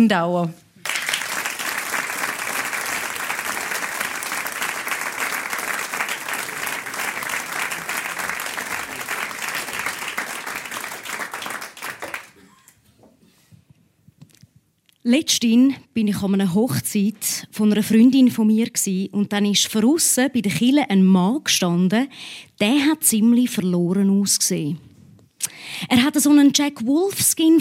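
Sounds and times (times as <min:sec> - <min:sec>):
speech: 0:00.0 - 0:00.6, 0:15.1 - 0:27.5
audience applause: 0:00.8 - 0:12.4.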